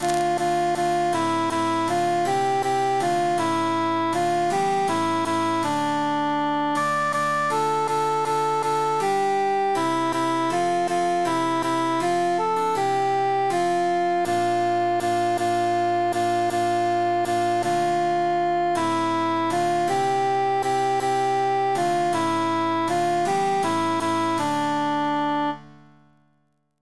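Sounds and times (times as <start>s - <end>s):
emphasized cantus melody: 0.0s - 25.8s.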